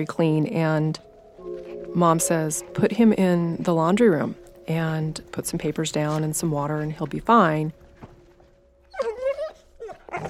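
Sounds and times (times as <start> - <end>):
speech: 0.0 - 1.1, 2.0 - 7.8
puppy whining: 8.9 - 10.2.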